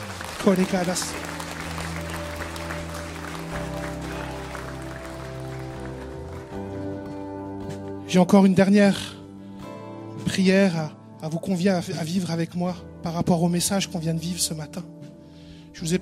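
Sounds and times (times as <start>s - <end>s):
audience applauding: 0.0s - 7.2s
speech: 0.4s - 1.4s, 8.1s - 9.2s, 10.4s - 15.0s, 15.8s - 16.0s.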